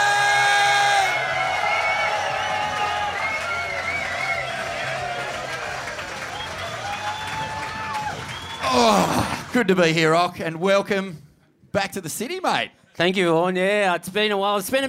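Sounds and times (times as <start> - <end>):
audience whooping: 0.0 - 9.4
audience clapping for a surfer being introduced: 0.9 - 9.7
speech: 9.6 - 14.8.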